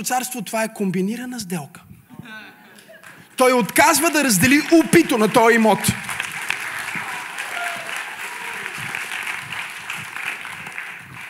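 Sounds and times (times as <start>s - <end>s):
speech: 0.0s - 2.5s, 3.4s - 6.0s
crowd clapping: 3.0s - 11.2s.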